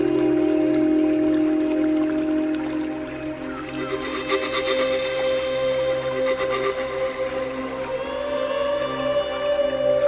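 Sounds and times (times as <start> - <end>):
pan flute playing long held notes: 0.0 - 10.0
shimmering rippling texture: 0.0 - 10.0
steady low drone: 0.0 - 10.0.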